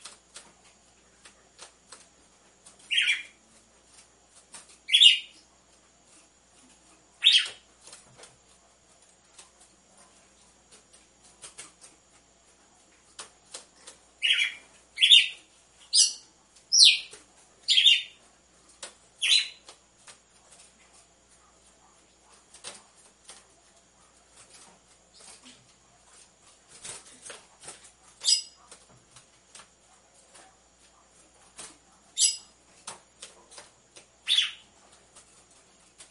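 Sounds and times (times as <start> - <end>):
red-cowled cardinal chirping: 2.9 - 3.4, 4.8 - 5.4, 7.2 - 7.6, 14.2 - 18.2, 19.2 - 19.6, 28.2 - 28.6, 32.2 - 32.5, 34.2 - 34.7.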